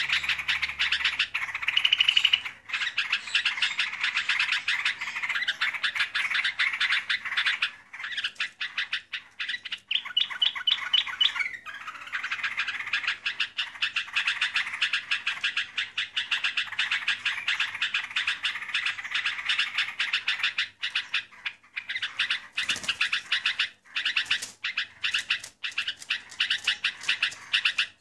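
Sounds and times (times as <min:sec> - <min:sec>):
Trucukan bird calling, lure call for bird catching: 0:00.0 - 0:27.9.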